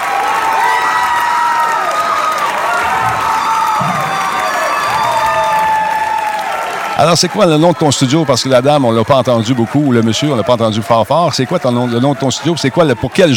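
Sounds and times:
audience cheering and applauding as winners announced: 0.0 - 13.3
high-pitched whoops: 0.6 - 6.8
speech: 7.0 - 13.3.

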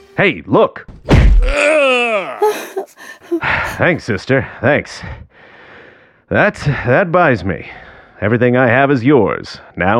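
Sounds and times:
speech: 0.2 - 5.3, 6.3 - 9.9
dull punch: 0.9 - 1.7
breathy gasps: 1.4 - 3.9, 5.2 - 6.2
man groaning: 1.4 - 4.0.

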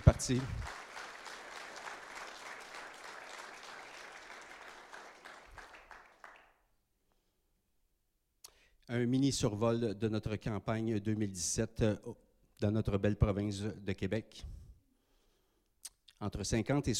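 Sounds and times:
applause: 0.0 - 6.7
speech: 0.1 - 0.6, 8.9 - 14.6, 16.2 - 16.9.

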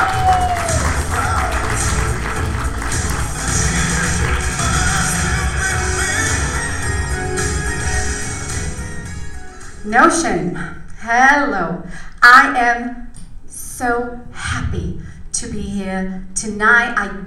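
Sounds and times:
crowd applause for a comedian: 0.0 - 7.6
speech: 10.0 - 13.0, 13.8 - 17.2.

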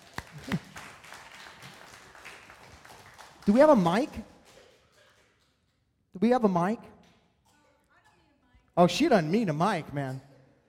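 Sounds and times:
crowd applauding softly: 0.0 - 6.1
speech: 0.4 - 0.6, 3.5 - 4.3, 6.2 - 6.9, 8.8 - 10.3.

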